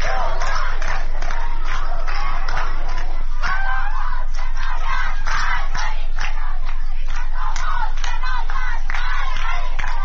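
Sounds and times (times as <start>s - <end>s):
protesters chanting anti-government slogans: 0.0s - 10.0s.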